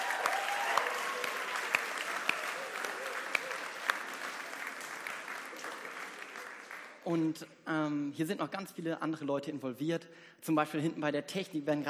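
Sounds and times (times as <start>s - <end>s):
applause for the band: 0.0s - 7.2s
speech: 7.1s - 11.8s.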